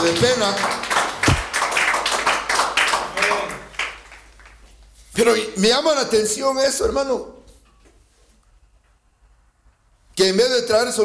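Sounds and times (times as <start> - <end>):
speech: 0.0 - 1.0, 5.2 - 7.4, 10.2 - 11.0
audience clapping: 0.0 - 4.7.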